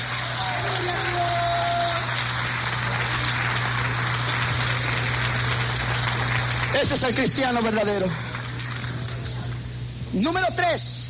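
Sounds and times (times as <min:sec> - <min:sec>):
audience applause: 0:00.0 - 0:09.6
speech: 0:06.8 - 0:08.3, 0:10.2 - 0:11.0.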